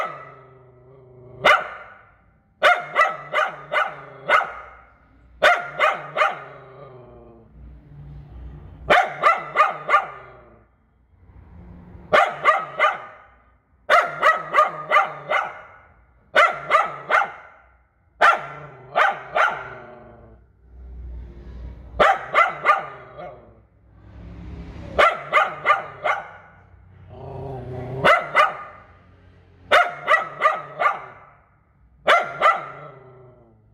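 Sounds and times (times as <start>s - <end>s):
poodle yapping: 0.0s - 0.6s, 1.4s - 2.0s, 2.6s - 7.0s, 8.9s - 10.6s, 12.1s - 13.3s, 13.9s - 17.6s, 18.2s - 20.2s, 22.0s - 23.5s, 25.0s - 26.5s, 28.0s - 28.8s, 29.7s - 31.4s, 32.1s - 33.4s.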